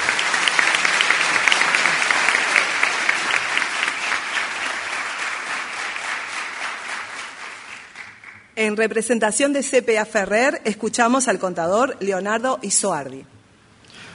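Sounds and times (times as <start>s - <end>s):
audience applause: 0.0s - 8.6s
speech: 8.6s - 13.4s.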